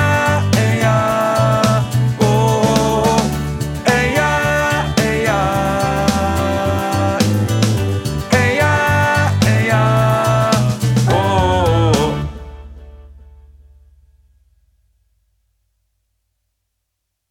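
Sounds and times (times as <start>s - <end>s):
tenor singing: 0.0s - 12.7s.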